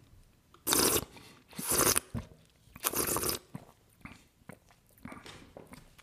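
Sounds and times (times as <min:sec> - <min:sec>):
person slurping wine while drawing air through the mouth: 0:00.6 - 0:02.1, 0:02.8 - 0:05.2
wet mouth sounds: 0:00.6 - 0:06.0.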